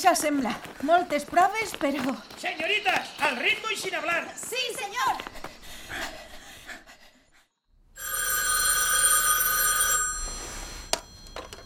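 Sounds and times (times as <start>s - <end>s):
speech: 0.0s - 6.2s
telephone ringing electronically: 8.0s - 11.6s.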